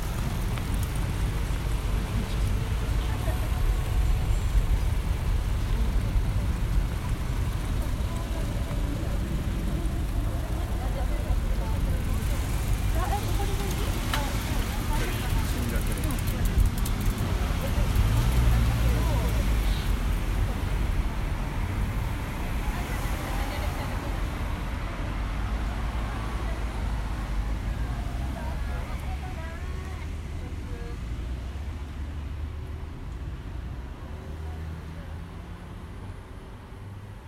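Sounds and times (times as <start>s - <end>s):
traffic rumble at Tokyo Olympic Stadium in Shinjuku: 0.0s - 37.2s
murmur of voices: 1.7s - 31.3s.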